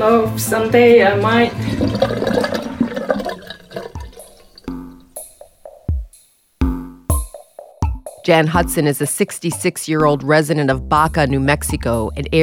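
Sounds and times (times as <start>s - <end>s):
speech: 0.0s - 2.4s, 8.3s - 12.4s
toilet flushing: 0.5s - 4.7s
water gurgling and dripping after toilet flush: 1.5s - 5.4s.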